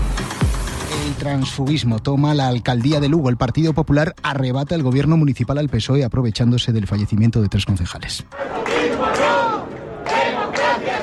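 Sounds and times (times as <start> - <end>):
speech: 1.1 - 9.2
crowd shouting protest chant in Spanish: 8.3 - 11.0.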